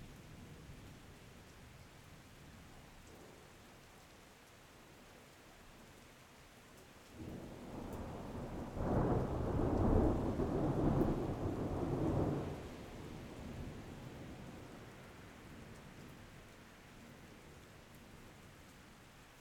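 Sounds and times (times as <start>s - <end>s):
storm: 7.2s - 14.8s.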